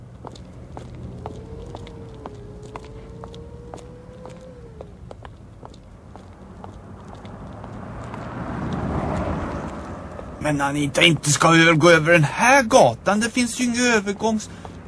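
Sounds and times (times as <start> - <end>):
footsteps of an adult and a child walking along a street: 0.0 - 11.8, 13.3 - 14.8
low traffic rumble: 0.0 - 14.8
vehicle rushing past: 0.5 - 5.2, 6.4 - 10.6
speech: 10.5 - 14.8.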